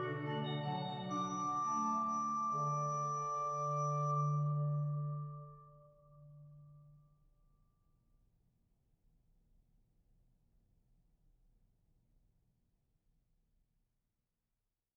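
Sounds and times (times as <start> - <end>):
organist playing miniatures: 0.0 - 4.5.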